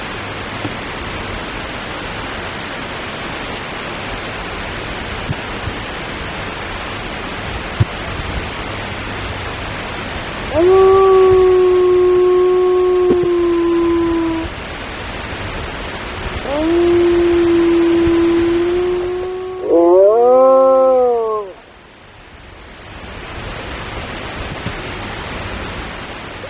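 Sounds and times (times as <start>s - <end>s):
solitary mammal howl: 10.5s - 14.6s, 16.4s - 21.6s.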